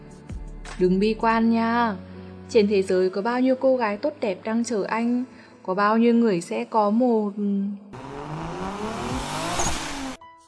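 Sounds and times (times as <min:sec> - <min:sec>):
speech: 0:00.8 - 0:07.8
car engine revving as driver accelerates: 0:08.0 - 0:10.2.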